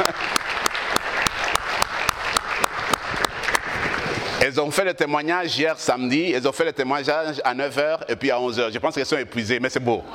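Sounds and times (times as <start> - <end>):
audience applauding loudly: 0.0 - 4.4
speech: 4.5 - 10.1.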